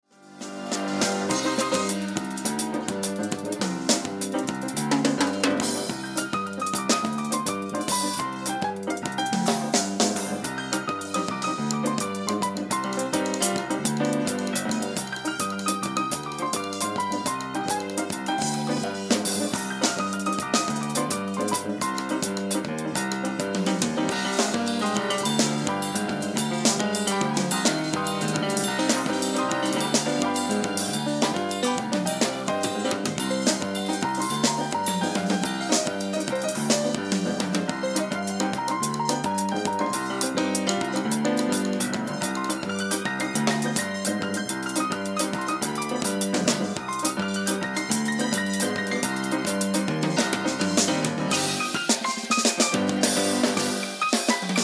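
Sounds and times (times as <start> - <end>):
island beat music: 0.4 - 54.6.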